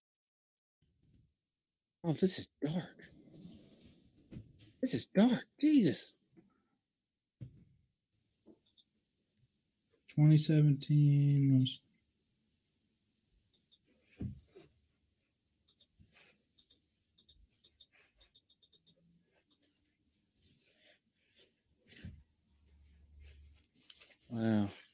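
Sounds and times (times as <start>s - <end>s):
speech: 2.0s - 3.2s, 4.8s - 6.2s, 10.2s - 11.8s, 24.3s - 24.8s
keyboard typing a search: 16.6s - 19.7s.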